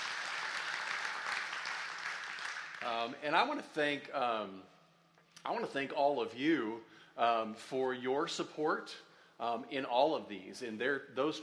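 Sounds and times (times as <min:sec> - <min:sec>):
audience applause: 0:00.0 - 0:03.2
speech: 0:02.8 - 0:04.8, 0:05.4 - 0:11.4.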